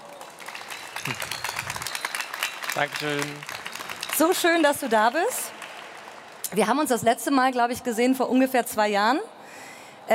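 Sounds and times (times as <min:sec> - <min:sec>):
studio audience applause welcoming the guest artist: 0:00.0 - 0:06.5
speech: 0:01.0 - 0:01.4, 0:02.8 - 0:03.5, 0:04.2 - 0:05.4, 0:06.5 - 0:09.4.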